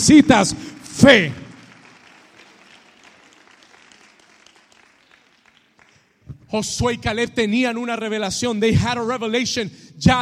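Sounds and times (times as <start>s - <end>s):
speech: 0.0s - 1.4s, 6.5s - 10.2s
audience applauding: 0.0s - 6.2s.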